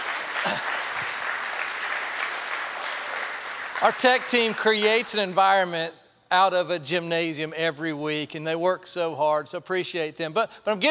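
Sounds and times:
audience applause: 0.0s - 5.3s
speech: 3.8s - 10.9s.

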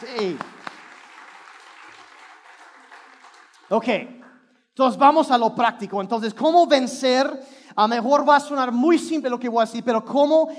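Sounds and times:
speech: 0.0s - 0.5s, 3.7s - 4.2s, 4.8s - 10.5s
audience applause: 0.0s - 4.3s.

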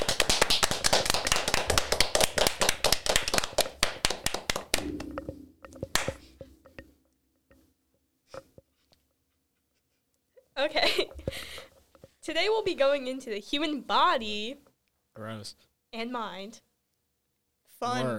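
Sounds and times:
round of applause, hand clapping: 0.0s - 6.3s
speech: 12.4s - 16.7s, 17.8s - 18.1s.

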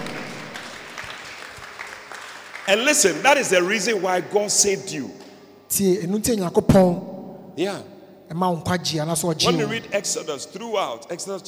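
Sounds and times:
crowd clapping in a large room: 0.0s - 4.2s
speech: 2.7s - 11.4s.

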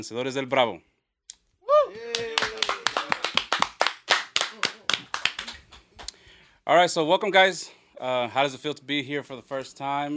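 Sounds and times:
speech: 0.0s - 0.9s, 6.7s - 10.1s
audience applause for a band: 1.9s - 5.8s.

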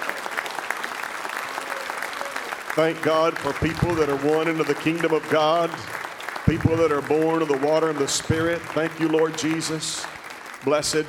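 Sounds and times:
audience clapping hands in praise: 0.0s - 11.0s
speech: 2.8s - 11.0s.

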